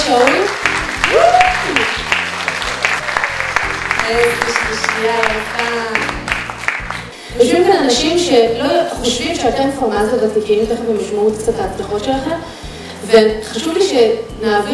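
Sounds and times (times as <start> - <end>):
audience applause: 0.0 - 7.1
speech: 5.0 - 6.0, 7.4 - 14.7.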